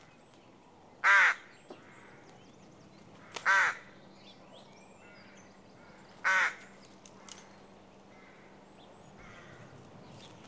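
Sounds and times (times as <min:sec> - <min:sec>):
rook caw: 0:01.0 - 0:02.2, 0:03.2 - 0:04.0, 0:05.0 - 0:07.5, 0:08.1 - 0:08.6, 0:09.2 - 0:09.8.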